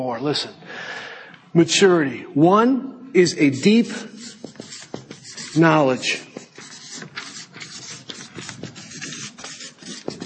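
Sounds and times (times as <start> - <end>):
speech: 0.0 - 4.6, 5.6 - 6.3
writing across a board: 3.2 - 10.2.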